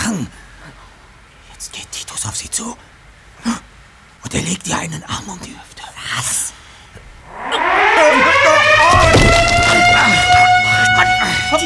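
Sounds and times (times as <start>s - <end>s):
speech: 1.6s - 3.6s, 4.3s - 6.5s
alarm system siren going off: 7.2s - 11.6s.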